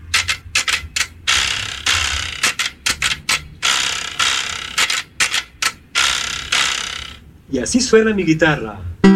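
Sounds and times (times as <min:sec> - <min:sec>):
wooden ratchet rattle clicking: 0:00.0 - 0:07.2
speech: 0:07.5 - 0:09.0.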